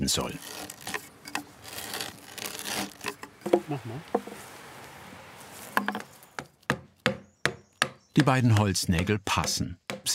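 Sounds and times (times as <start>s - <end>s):
speech: 0.0s - 0.7s, 3.5s - 4.2s, 8.2s - 10.1s
drill boring a hole into a timber sill for wooden pegs: 0.3s - 3.2s.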